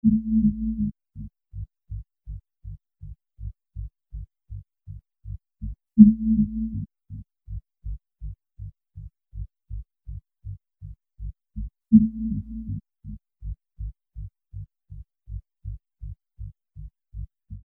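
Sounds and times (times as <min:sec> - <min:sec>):
pulse tone: 0:00.0 - 0:00.9, 0:06.0 - 0:06.9, 0:11.9 - 0:12.8.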